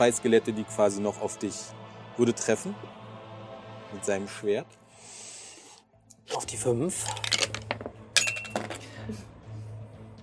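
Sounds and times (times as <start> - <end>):
speech: 0.0 - 3.0, 3.9 - 4.8, 6.3 - 7.6, 8.6 - 9.3
dice landing on a table during a tabletop role-playing game: 7.2 - 8.8.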